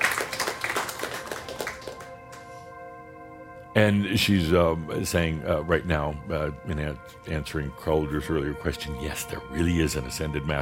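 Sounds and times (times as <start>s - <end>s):
audience applause: 0.0s - 2.4s
speech: 3.8s - 10.6s.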